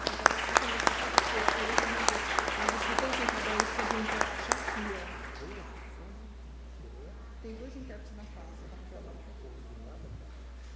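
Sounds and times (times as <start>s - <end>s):
applause: 0.0s - 6.0s.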